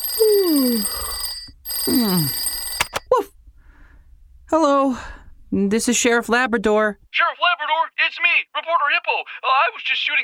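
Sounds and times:
telephone ringing at the police station: 0.0s - 3.1s
speech: 5.7s - 7.4s, 8.2s - 10.2s.

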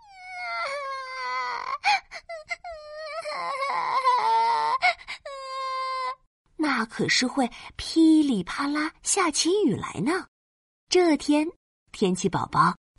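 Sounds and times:
crying wail sound effect: 0.0s - 6.2s
speech: 6.8s - 10.3s, 10.9s - 12.9s.

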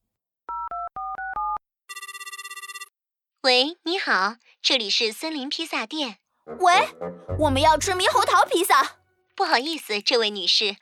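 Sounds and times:
mobile phone dialing a pizza shop: 0.5s - 2.9s
speech: 3.4s - 10.8s.

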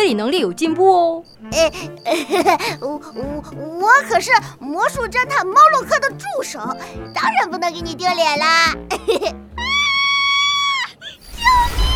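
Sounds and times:
speech: 0.1s - 9.7s
scream: 9.6s - 11.9s.

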